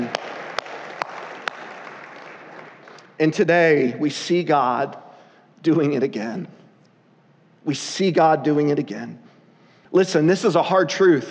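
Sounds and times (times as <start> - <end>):
audience applause: 0.0 - 3.1
speech: 3.2 - 5.0, 5.6 - 6.6, 7.6 - 9.2, 9.9 - 11.2.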